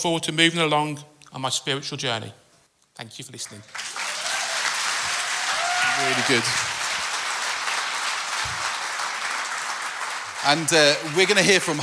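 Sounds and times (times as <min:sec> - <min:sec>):
speech: 0:00.0 - 0:02.4, 0:03.0 - 0:03.9, 0:06.0 - 0:06.7, 0:10.4 - 0:11.8
audience applause: 0:03.7 - 0:11.8.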